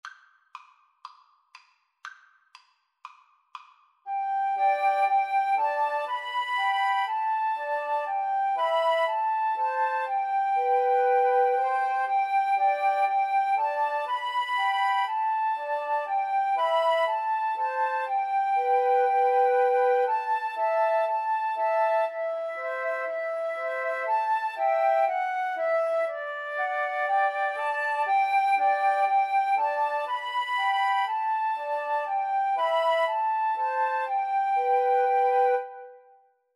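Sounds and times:
flute trio playing: 0:04.1 - 0:36.3.

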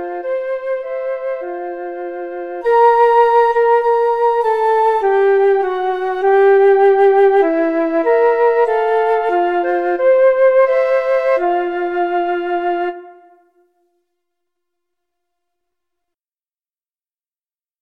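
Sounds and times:
flute trio playing: 0:00.0 - 0:14.0.

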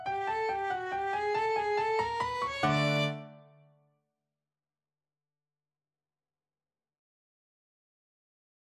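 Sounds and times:
waltz on violin: 0:00.1 - 0:03.3.

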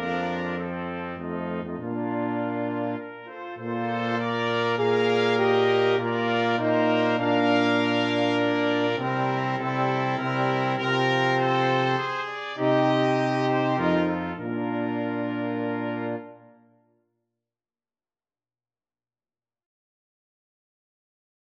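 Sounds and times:
brass quintet playing a nocturne: 0:00.0 - 0:16.8.

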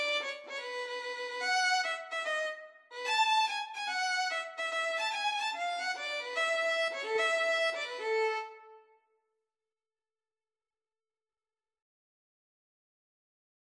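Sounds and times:
violin duet: 0:00.0 - 0:08.8.

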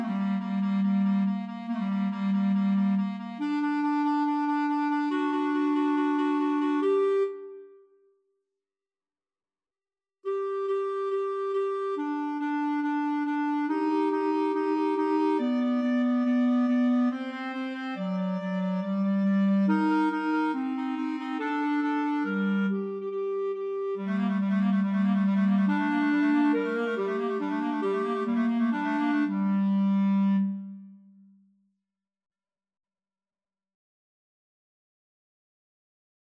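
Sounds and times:
symphony clarinet part for karaoke: 0:00.0 - 0:07.8, 0:10.3 - 0:31.0.

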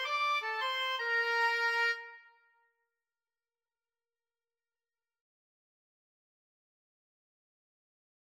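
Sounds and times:
woodwind trio: 0:00.0 - 0:02.3.

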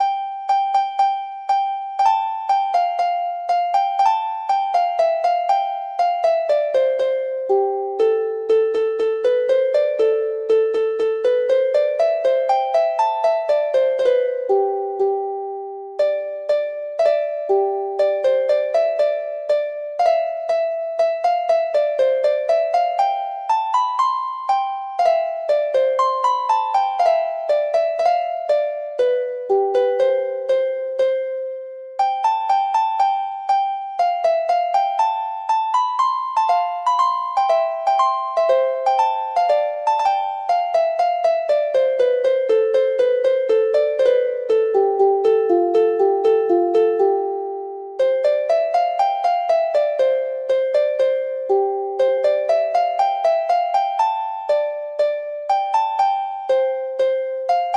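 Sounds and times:
harp: 0:00.0 - 0:57.7.

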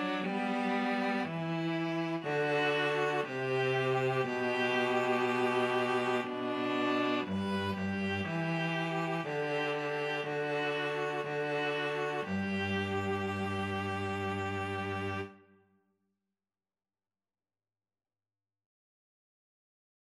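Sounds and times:
string trio playing a national anthem: 0:00.0 - 0:15.4.

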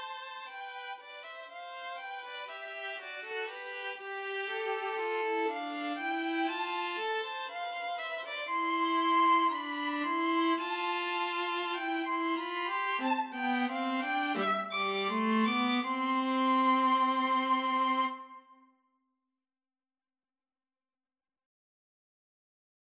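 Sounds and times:
string trio playing: 0:00.0 - 0:18.3.

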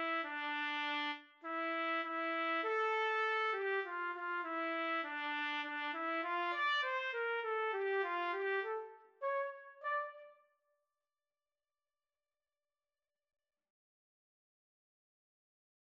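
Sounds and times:
trumpet and trombone duet: 0:00.0 - 0:10.3.

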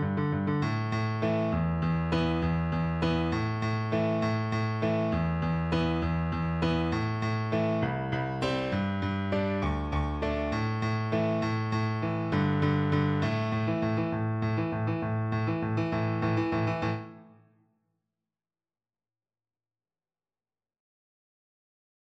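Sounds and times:
piano duet: 0:00.0 - 0:17.5.

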